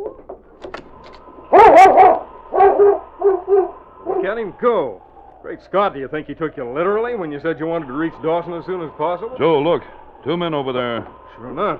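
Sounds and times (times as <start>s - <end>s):
dog barking: 1.5s - 4.4s
speech: 4.4s - 11.7s.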